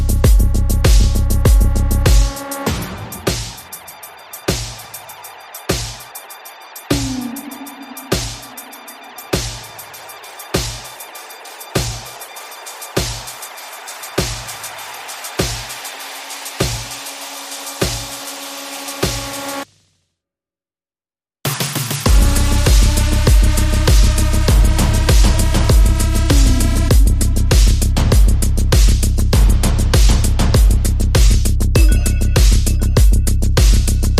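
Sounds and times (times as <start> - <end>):
bass: 0.0 - 3.6, 22.1 - 34.1
drums: 0.0 - 19.8, 21.5 - 34.1
sound effects: 2.2 - 14.6.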